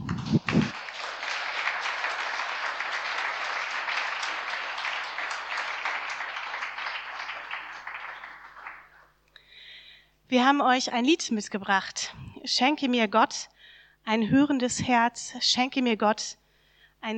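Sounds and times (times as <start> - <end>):
audience applause: 0.0 - 9.2
speech: 10.3 - 16.4, 17.0 - 17.1.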